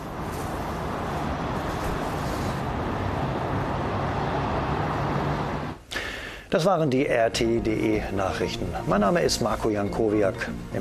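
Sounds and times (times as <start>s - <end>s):
cars driving away: 0.0s - 6.3s
speech: 6.5s - 10.7s.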